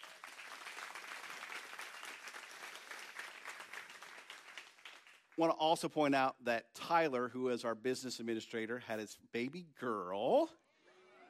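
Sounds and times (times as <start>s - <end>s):
audience applauding new staff: 0.0s - 5.4s
speech: 5.4s - 10.6s.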